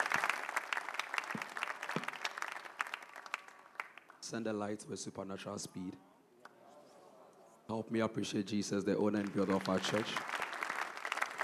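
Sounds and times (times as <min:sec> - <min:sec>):
audience applause: 0:00.0 - 0:04.2, 0:09.1 - 0:11.4
speech: 0:04.3 - 0:06.1, 0:07.7 - 0:10.3.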